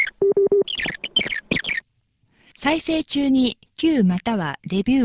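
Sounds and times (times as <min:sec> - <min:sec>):
beeping cue tone on cassette tape: 0:00.2 - 0:00.7
speech: 0:02.6 - 0:05.0.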